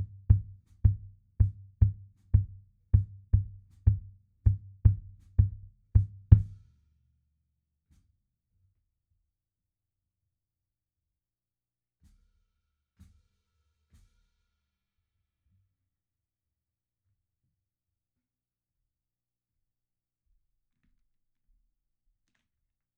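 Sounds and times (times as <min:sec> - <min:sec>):
percussion intro kick drum: 0:00.0 - 0:06.6.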